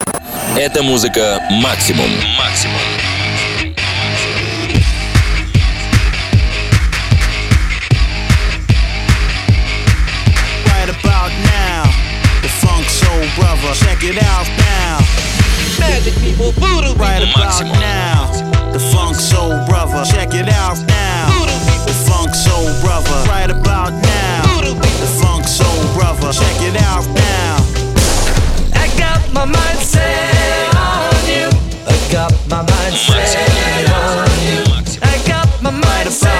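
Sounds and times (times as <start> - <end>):
radio jingle beat mix: 0.0 - 36.3.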